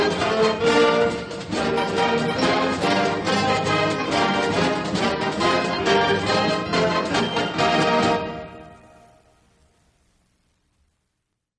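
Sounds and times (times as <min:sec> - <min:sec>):
victory march: 0:00.0 - 0:09.3.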